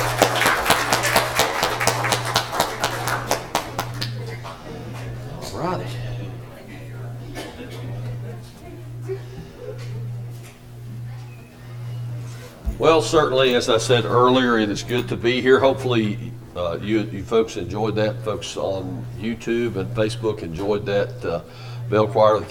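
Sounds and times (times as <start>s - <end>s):
audience clapping: 0.0s - 5.2s
laughter: 0.0s - 10.4s
low pulsing hum: 0.0s - 22.5s
murmuring voices: 2.6s - 22.5s
speech: 12.9s - 22.5s.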